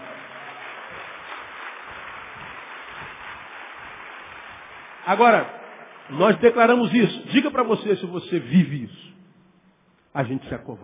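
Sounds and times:
applause: 0.0 - 8.1
speech: 5.0 - 9.2, 10.1 - 10.8.

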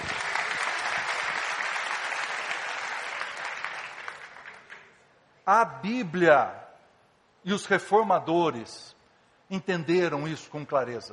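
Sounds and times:
audience applause: 0.0 - 5.0
speech: 5.5 - 6.6, 7.4 - 11.1.

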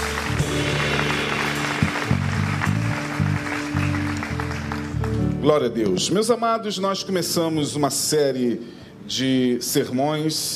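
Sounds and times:
audience applauding: 0.0 - 5.4
speech: 5.4 - 10.5.

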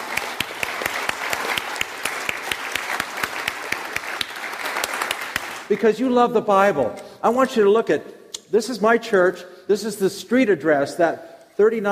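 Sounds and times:
crowd clapping: 0.0 - 5.9
speech: 5.7 - 11.9.

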